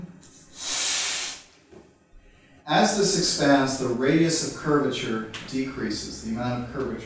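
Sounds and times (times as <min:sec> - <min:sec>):
breath blown into a weakened balloon: 0:00.2 - 0:01.6
speech: 0:02.7 - 0:07.0.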